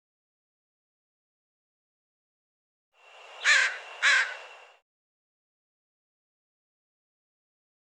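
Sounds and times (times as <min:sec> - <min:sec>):
bird harsh cawing calls: 0:03.1 - 0:04.8.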